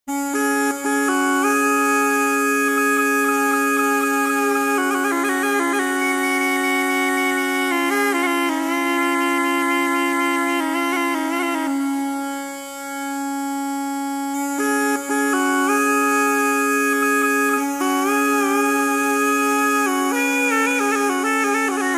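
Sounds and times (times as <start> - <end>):
pipe instrument: 0.1 - 21.9.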